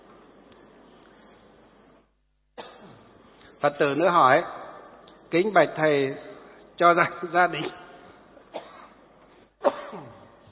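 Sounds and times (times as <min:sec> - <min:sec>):
quiet room hum: 0:00.0 - 0:10.5
person coughing: 0:02.6 - 0:03.0, 0:07.5 - 0:09.0, 0:09.6 - 0:10.4
speech: 0:03.6 - 0:04.6, 0:05.3 - 0:07.8.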